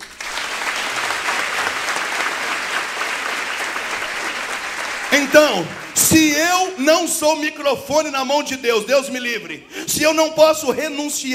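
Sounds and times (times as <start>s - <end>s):
audience applause: 0.0s - 6.7s
speech: 5.2s - 11.3s.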